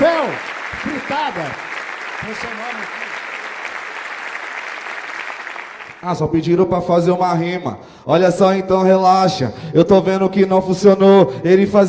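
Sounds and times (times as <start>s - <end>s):
audience applause: 0.0s - 6.0s
speech: 0.4s - 3.2s, 6.0s - 11.8s.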